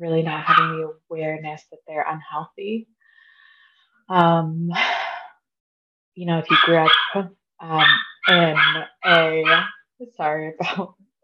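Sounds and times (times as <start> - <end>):
speech: 0.0 - 3.0, 4.1 - 5.1, 6.2 - 11.0
dog barking: 0.4 - 0.7, 6.5 - 7.2, 7.8 - 9.8.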